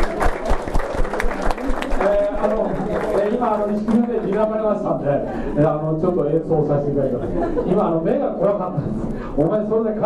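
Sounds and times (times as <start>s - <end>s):
audience applause: 0.0s - 4.7s
speech: 3.5s - 10.0s
laughter: 7.1s - 8.2s.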